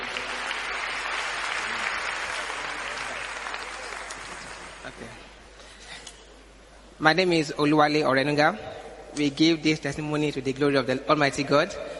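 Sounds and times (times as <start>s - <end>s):
crowd applauding: 0.0s - 5.2s
speech: 5.0s - 5.2s, 7.0s - 11.9s.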